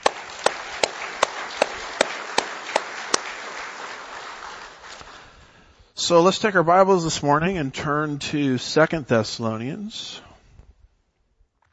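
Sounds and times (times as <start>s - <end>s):
audience applause: 0.0s - 5.6s
speech: 6.1s - 10.3s.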